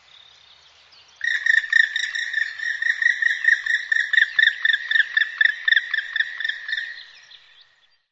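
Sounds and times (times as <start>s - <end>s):
bird calling: 1.2s - 7.6s.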